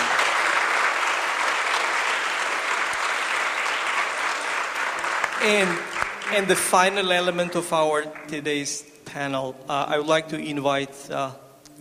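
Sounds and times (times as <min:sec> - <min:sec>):
audience applause: 0:00.0 - 0:07.0
speech: 0:05.4 - 0:11.8.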